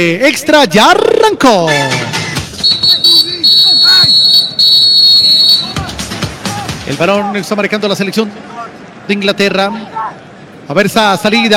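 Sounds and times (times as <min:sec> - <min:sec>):
speech: 0:00.0 - 0:02.0, 0:06.9 - 0:08.5, 0:09.1 - 0:10.1, 0:10.7 - 0:11.5
referee's whistle starting the match: 0:02.6 - 0:05.8.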